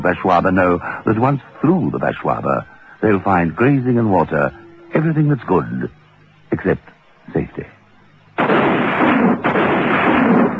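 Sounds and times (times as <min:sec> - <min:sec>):
speech: 0:00.0 - 0:07.8
gunshot: 0:08.4 - 0:10.5.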